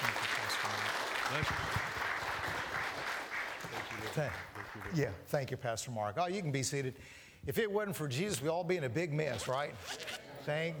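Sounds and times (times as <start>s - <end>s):
church congregation clapping for a guest preacher: 0.0s - 5.3s
speech: 1.3s - 1.9s, 4.1s - 10.7s.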